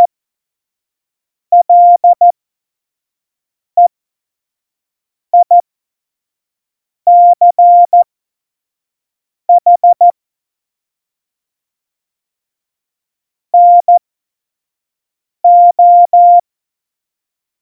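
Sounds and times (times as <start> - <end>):
CW Morse code beeps: 1.5 - 2.2, 5.4 - 5.6, 7.1 - 8.0, 9.5 - 10.1, 13.6 - 14.0, 15.5 - 16.4.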